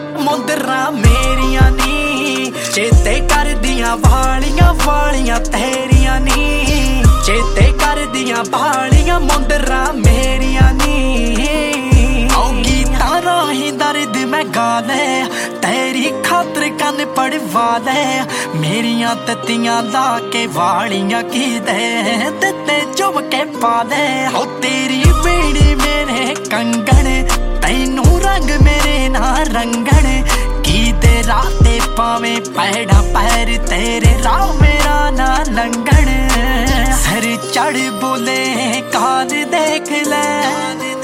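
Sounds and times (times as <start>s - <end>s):
Punjabi song ringtone: 0.0s - 41.0s.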